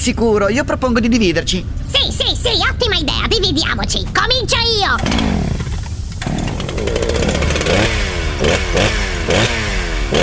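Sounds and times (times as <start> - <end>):
speech: 0.0 - 5.6
chainsaw starting and revving: 5.0 - 10.2.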